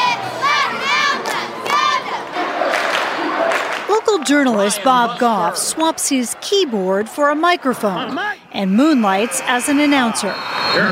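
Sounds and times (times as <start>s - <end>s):
crowd cheering and yelling at a football game: 0.0s - 10.9s
speech: 4.3s - 10.9s.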